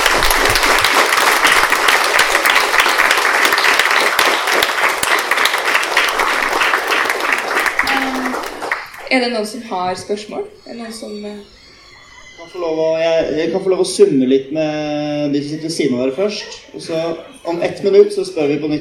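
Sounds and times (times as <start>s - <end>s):
audience applause: 0.0s - 9.3s
speech: 9.2s - 11.6s, 12.4s - 18.7s.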